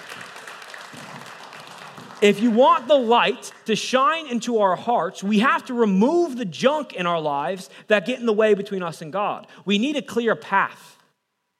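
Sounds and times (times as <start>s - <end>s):
audience round of applause: 0.0s - 3.8s
speech: 2.2s - 11.0s.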